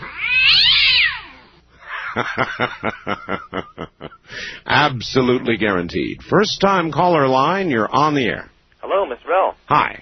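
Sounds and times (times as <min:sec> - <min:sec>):
cat yowling: 0:00.0 - 0:01.5
speech: 0:02.2 - 0:09.9.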